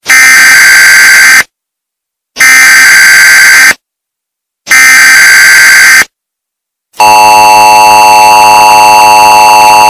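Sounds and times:
emergency alert system alarm: 0.0 - 1.5, 2.4 - 3.8, 4.7 - 6.1, 7.0 - 9.8.

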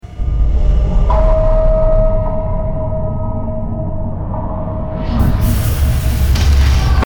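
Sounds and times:
ominous music: 0.0 - 7.0.

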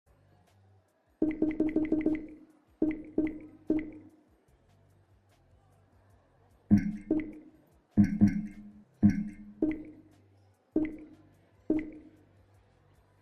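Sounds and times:
Steam VR menu sound: 1.2 - 4.1, 6.7 - 10.1, 10.8 - 12.2.

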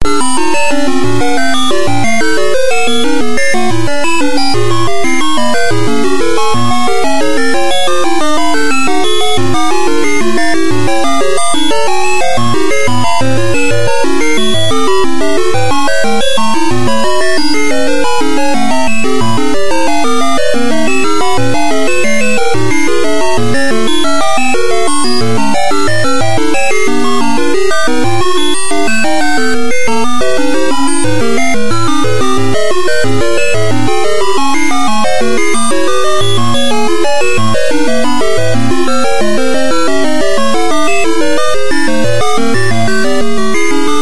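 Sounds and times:
music: 0.0 - 44.0.

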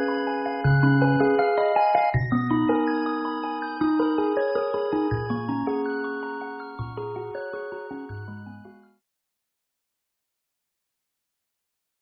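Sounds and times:
fairy background music: 0.0 - 8.9.

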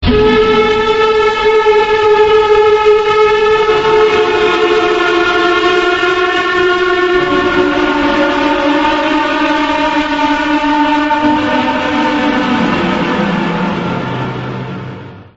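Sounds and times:
hell sirens: 0.0 - 15.3.

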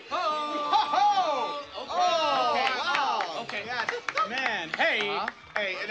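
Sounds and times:
laughter: 0.1 - 4.9
applause: 2.6 - 5.7.

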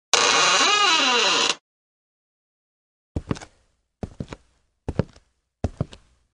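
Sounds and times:
door creaking open: 0.1 - 1.6
footsteps: 3.2 - 6.1.

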